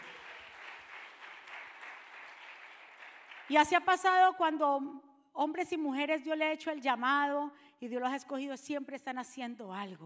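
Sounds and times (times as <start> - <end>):
audience applauding: 0.0 - 3.6
speech: 3.5 - 10.0.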